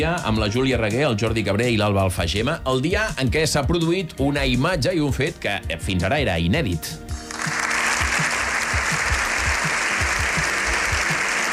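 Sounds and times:
speech: 0.0 - 7.0
sustained applause in a parliament chamber: 7.2 - 11.5.

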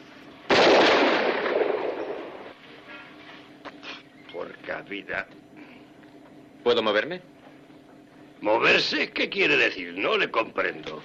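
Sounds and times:
handgun shot fired in a shooting test: 0.5 - 2.1
speech: 4.8 - 5.5, 6.6 - 7.3, 8.4 - 11.0.

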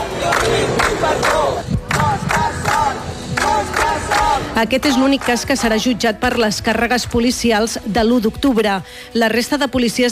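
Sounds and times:
crowd shouting support outside courthouse: 0.0 - 4.6
speech: 4.6 - 10.1.

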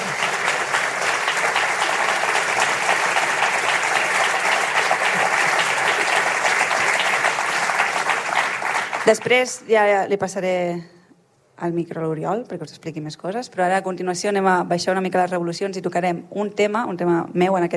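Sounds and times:
audience applause: 0.0 - 9.5
speech: 9.1 - 11.0, 11.6 - 17.7.

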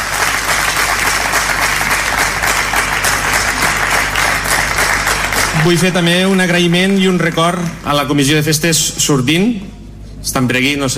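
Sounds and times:
audience applause: 0.0 - 8.0
speech: 5.6 - 10.9.

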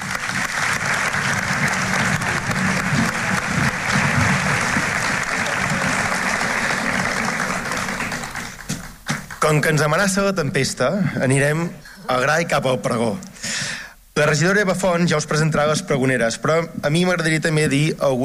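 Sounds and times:
audience applause: 0.0 - 9.6
speech: 9.5 - 13.6, 14.2 - 18.2.

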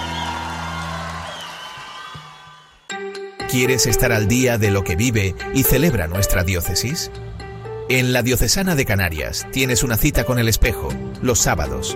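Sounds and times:
audience applause: 0.0 - 2.8
speech: 3.5 - 11.9.

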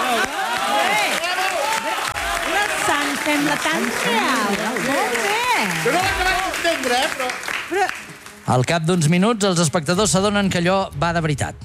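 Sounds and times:
theatre audience applauding: 0.0 - 9.1
speech: 3.5 - 11.6.

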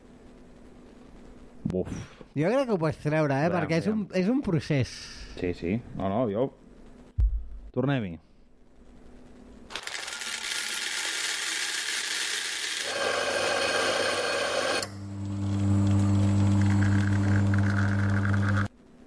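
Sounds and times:
speech: 1.7 - 6.6, 7.7 - 8.3
microwave oven mechanism: 9.7 - 19.0.

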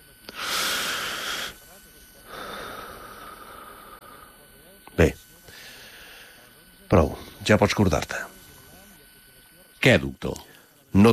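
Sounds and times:
patient breathing deeply during medical examination: 0.3 - 4.4, 5.5 - 6.5
speech: 5.0 - 5.2, 6.9 - 8.4, 9.8 - 11.1.

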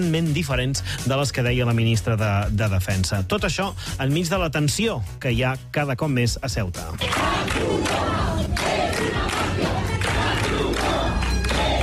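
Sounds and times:
speech: 0.0 - 8.3
protesters shouting: 7.0 - 11.8.

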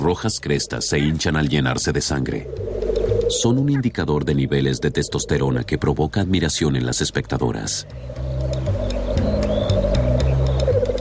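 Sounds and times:
speech: 0.0 - 8.7
bird's air-sac display warbling call: 2.2 - 5.8, 7.8 - 10.9.

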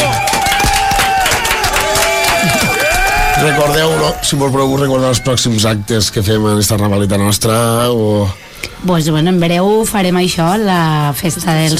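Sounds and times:
audience applause: 0.0 - 4.2
speech: 3.4 - 11.7.

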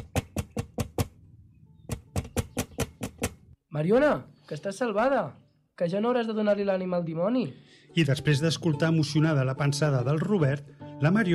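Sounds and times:
knocking on window glass: 0.0 - 1.2, 1.9 - 3.4
speech: 3.8 - 11.3.

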